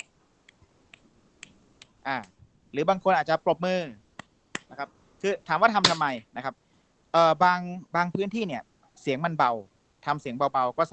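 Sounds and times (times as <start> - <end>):
finger snaps: 0.0 - 2.3
speech: 2.0 - 4.0, 4.7 - 10.9.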